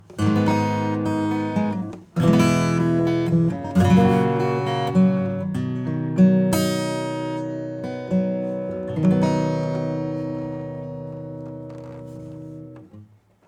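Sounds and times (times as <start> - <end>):
acoustic music: 0.0 - 13.2.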